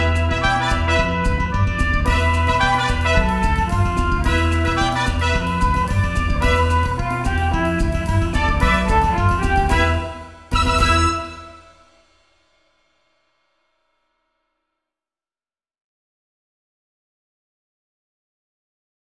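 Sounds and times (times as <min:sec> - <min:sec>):
recorder playing samba: 0:00.0 - 0:11.9.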